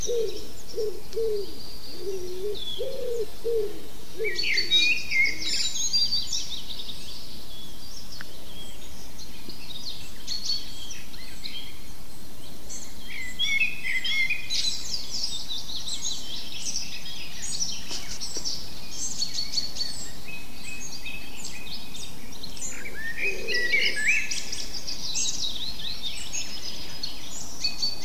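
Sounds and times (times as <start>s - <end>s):
common blackbird calls: 0.0s - 6.6s, 12.8s - 28.0s.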